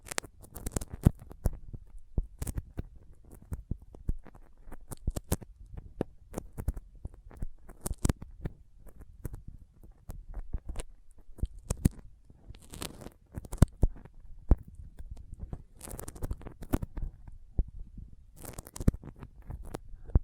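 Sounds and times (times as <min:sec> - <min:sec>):
sticky fingers peeling and tapping: 0:00.0 - 0:17.8, 0:18.4 - 0:20.2.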